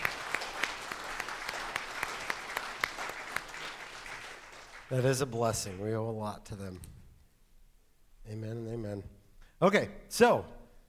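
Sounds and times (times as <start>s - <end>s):
crowd clapping: 0.0s - 6.0s
speech: 4.9s - 7.0s, 8.3s - 10.6s.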